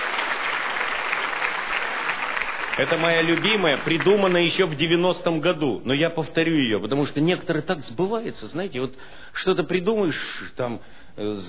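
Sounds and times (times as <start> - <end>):
audience applauding at a stage performance: 0.0 - 4.8
speech: 2.8 - 11.4.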